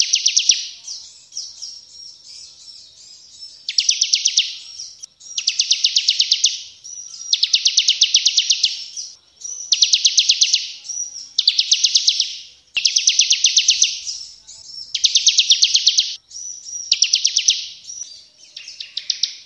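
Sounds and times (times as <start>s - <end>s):
caged Bar-winged prinia singing buzzy high trilled song: 0.0s - 19.4s.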